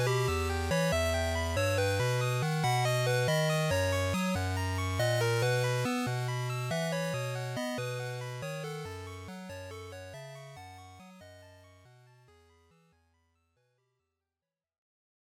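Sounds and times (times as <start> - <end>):
Game Boy RPG title screen music: 0.0 - 12.3.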